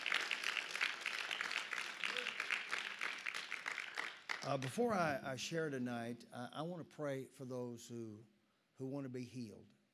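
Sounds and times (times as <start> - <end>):
crowd applause: 0.0 - 4.8
speech: 4.4 - 9.8.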